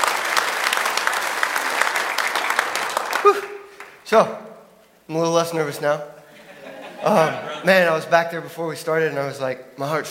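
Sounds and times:
audience clapping: 0.0s - 4.3s
speech: 4.1s - 4.4s, 5.1s - 6.2s, 7.0s - 10.0s
laughter: 6.2s - 8.0s.

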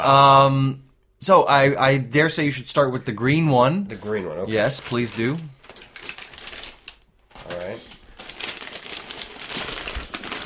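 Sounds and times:
speech: 0.0s - 5.5s
wrapping paper crinkling as a wrapped gift is torn open: 4.0s - 10.4s.

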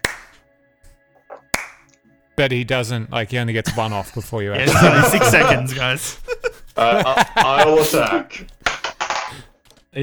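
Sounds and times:
slow clapping: 0.0s - 0.4s
speech: 2.4s - 6.2s, 6.8s - 8.6s
laughter: 3.7s - 8.5s.

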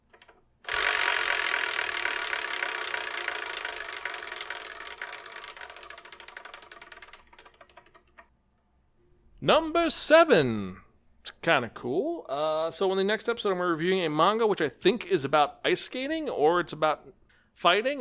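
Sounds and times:
prize wheel spinning with ratcheting clatter: 0.0s - 8.3s
speech: 9.4s - 10.8s, 11.4s - 17.9s.

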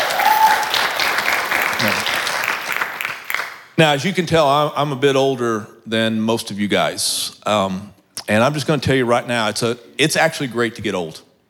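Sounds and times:
round of applause: 0.0s - 3.8s
speech: 3.8s - 11.3s.

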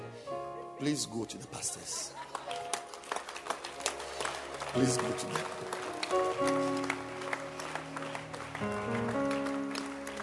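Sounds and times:
speech: 0.8s - 2.4s, 4.7s - 6.8s
children clapping hands: 2.2s - 10.2s.

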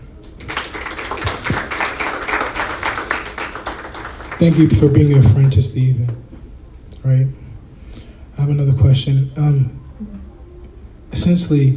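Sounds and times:
group of people clapping: 0.2s - 6.2s
speech: 4.4s - 6.3s, 7.0s - 7.4s, 8.5s - 10.1s, 11.2s - 11.7s.

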